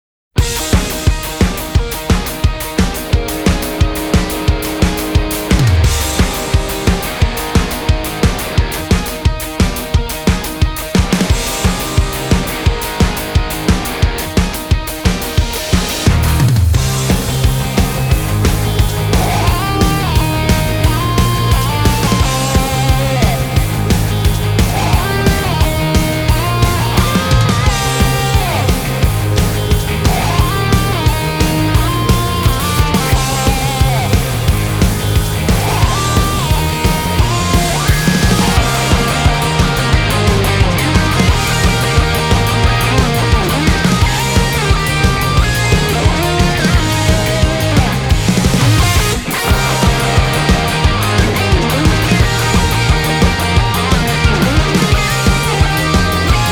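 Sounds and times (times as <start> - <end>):
instrumental music: 0.4 - 56.5.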